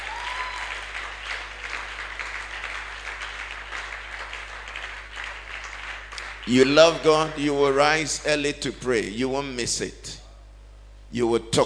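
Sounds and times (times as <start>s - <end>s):
audience clapping: 0.0s - 7.1s
speech: 6.5s - 10.2s, 11.1s - 11.6s.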